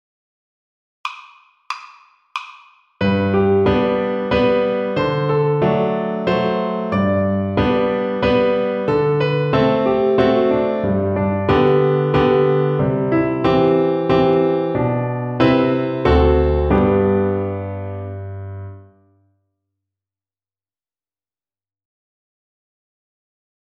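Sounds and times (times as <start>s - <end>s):
piano accompaniment: 3.0s - 19.0s.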